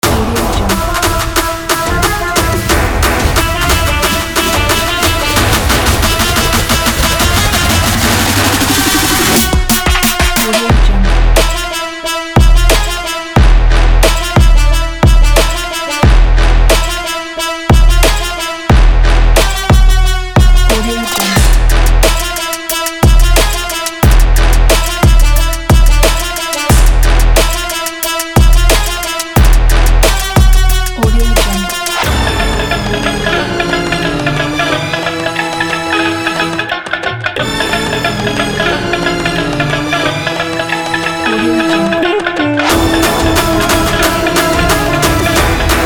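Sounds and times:
middle eastern trap music: 0:00.0 - 0:45.8.

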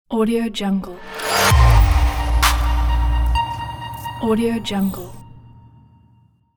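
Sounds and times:
tech glitch logo sound: 0:01.0 - 0:05.2.

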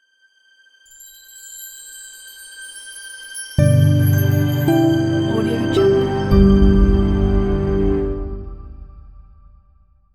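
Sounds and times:
corporate logo jingle: 0:03.6 - 0:08.5.

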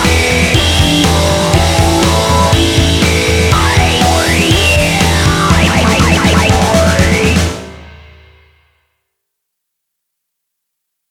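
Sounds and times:
energetic rock music: 0:00.0 - 0:08.5.

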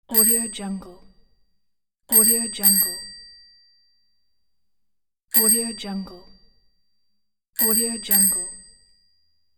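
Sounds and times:
bike bell: 0:02.1 - 0:04.1, 0:05.4 - 0:06.6, 0:07.6 - 0:09.4.

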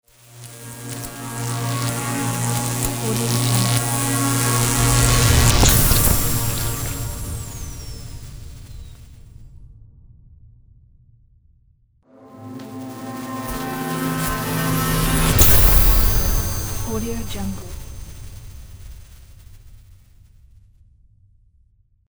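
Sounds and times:
electricity logo sound: 0:00.1 - 0:08.7, 0:12.2 - 0:18.6.

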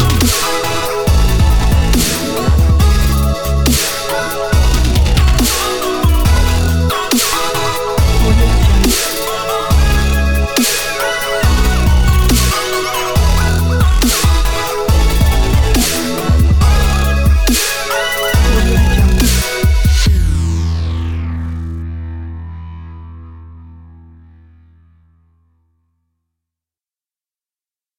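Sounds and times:
inspiring dubstep music: 0:00.0 - 0:21.9.

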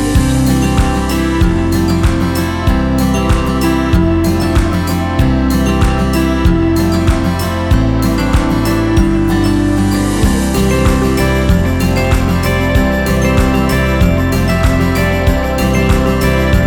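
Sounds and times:
folk acoustic guitar: 0:00.0 - 0:16.6.

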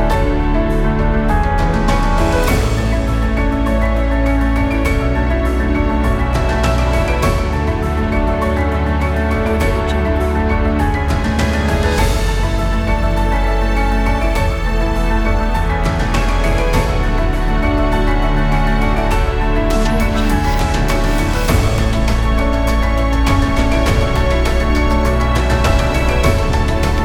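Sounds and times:
positive cinematic music: 0:00.0 - 0:27.0.

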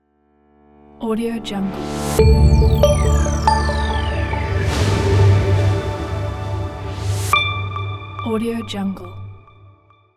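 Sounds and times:
brand logo intro sound: 0:01.8 - 0:08.4.

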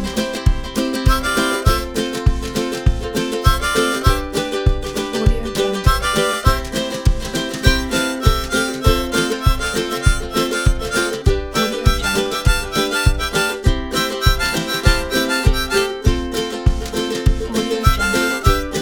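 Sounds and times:
happy harmonica: 0:00.2 - 0:18.8.

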